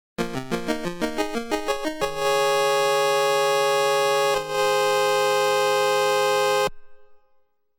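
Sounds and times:
fanfare: 0:00.2 - 0:06.7.

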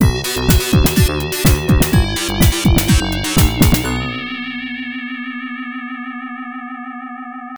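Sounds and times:
level clear game jingle: 0:00.0 - 0:04.6.

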